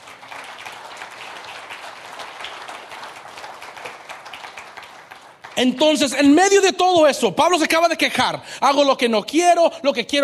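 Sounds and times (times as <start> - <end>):
applause: 0.0 - 6.4
speech: 5.6 - 10.2.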